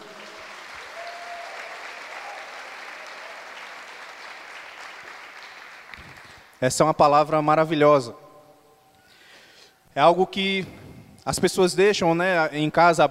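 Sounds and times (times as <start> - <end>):
audience applause: 0.0 - 6.6
speech: 6.6 - 8.2, 10.0 - 13.0.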